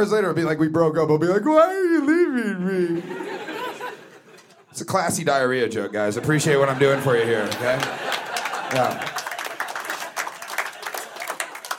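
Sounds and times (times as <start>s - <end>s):
speech: 0.0s - 3.3s, 4.8s - 9.2s
laughter: 1.8s - 4.8s, 5.8s - 11.7s
audience applause: 6.6s - 11.7s.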